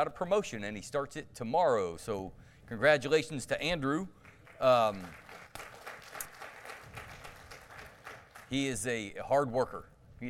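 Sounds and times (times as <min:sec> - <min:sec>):
speech: 0:00.0 - 0:05.7, 0:08.5 - 0:10.2
audience applause: 0:04.4 - 0:08.5.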